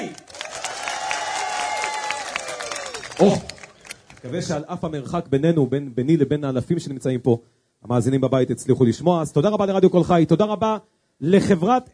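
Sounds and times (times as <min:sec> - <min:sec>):
audience applause: 0:00.3 - 0:04.4
speech: 0:03.2 - 0:03.5, 0:04.2 - 0:11.9.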